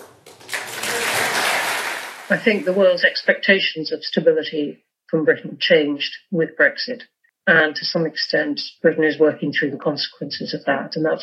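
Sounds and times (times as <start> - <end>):
slow applause for Boris Johnson: 0.0 - 3.1
speech: 2.3 - 11.2.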